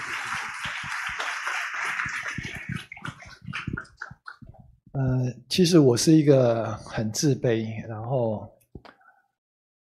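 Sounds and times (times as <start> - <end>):
audience clapping: 0.0 - 4.4
speech: 5.0 - 8.6.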